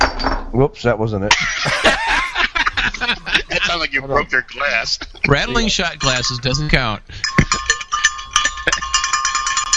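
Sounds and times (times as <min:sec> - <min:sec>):
speech: 0:00.6 - 0:02.0, 0:03.6 - 0:07.5
laughter: 0:01.3 - 0:07.6, 0:08.3 - 0:09.1
bell ringing: 0:05.2 - 0:09.7.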